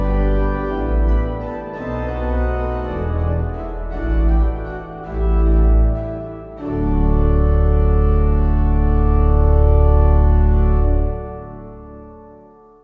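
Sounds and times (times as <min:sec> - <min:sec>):
organ playing a hymn: 0:00.0 - 0:12.8.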